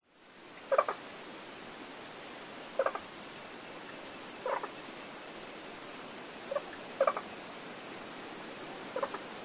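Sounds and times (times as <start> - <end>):
scarlet-sided pobblebonk plunking calls in spring in Queensland rainforest: 0.7 - 1.0, 2.8 - 3.1, 4.4 - 4.8, 6.5 - 7.3, 8.9 - 9.3.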